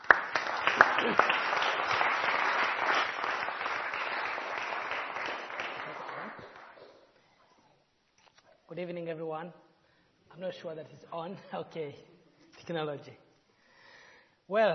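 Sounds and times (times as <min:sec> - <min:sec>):
audience round of applause: 0:00.0 - 0:06.8
speech: 0:01.0 - 0:01.4, 0:08.8 - 0:09.7, 0:10.4 - 0:12.1, 0:12.7 - 0:13.2, 0:14.5 - 0:14.7.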